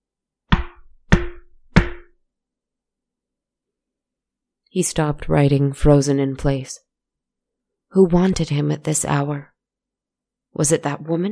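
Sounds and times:
firm knocks on a door: 0:00.5 - 0:02.1
speech: 0:04.7 - 0:06.9, 0:07.9 - 0:09.5, 0:10.5 - 0:11.3.

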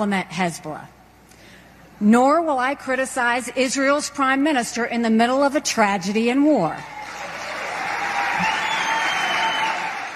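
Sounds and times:
speech: 0:00.0 - 0:01.0, 0:02.0 - 0:07.2
audience applause after a campaign speech: 0:06.9 - 0:10.1.

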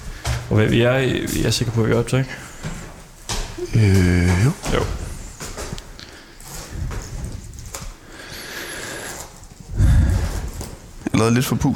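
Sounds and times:
footsteps climbing a staircase: 0:00.0 - 0:08.0
speech: 0:00.5 - 0:02.5, 0:03.7 - 0:05.0, 0:11.2 - 0:11.7.

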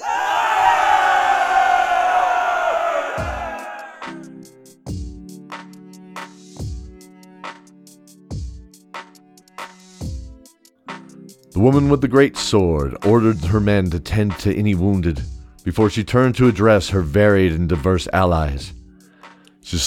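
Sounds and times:
crowd cheering in victory: 0:00.0 - 0:04.2
speech: 0:11.6 - 0:18.8.

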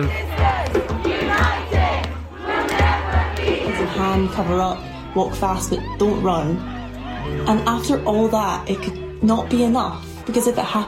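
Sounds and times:
large street protest crowd shouting and chanting: 0:00.0 - 0:10.8
speech: 0:04.2 - 0:10.8.

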